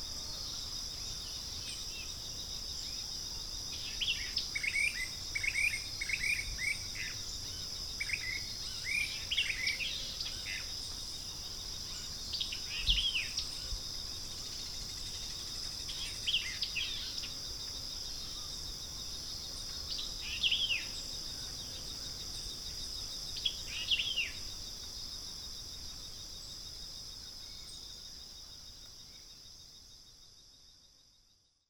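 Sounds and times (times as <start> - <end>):
birds: 0.0 - 24.6.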